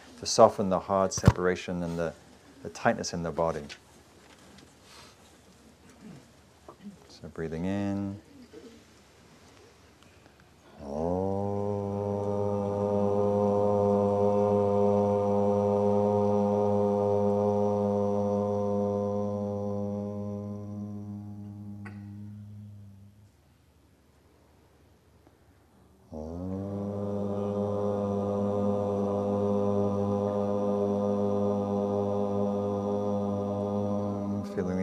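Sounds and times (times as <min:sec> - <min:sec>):
speech: 0:00.2 - 0:03.8, 0:07.2 - 0:08.3
group chanting: 0:10.6 - 0:23.4, 0:26.0 - 0:34.8.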